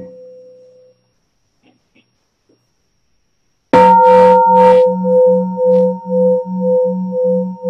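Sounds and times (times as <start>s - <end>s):
single bell struck: 3.8s - 7.6s.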